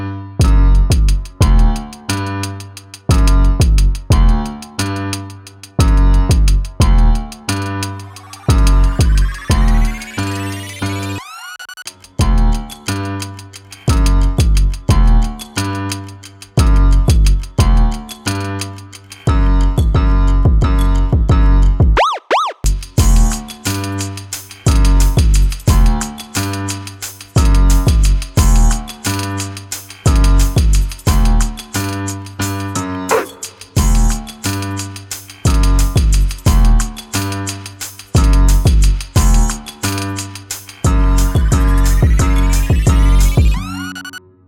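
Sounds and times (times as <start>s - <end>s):
urban underscore music: 0.4s - 44.2s.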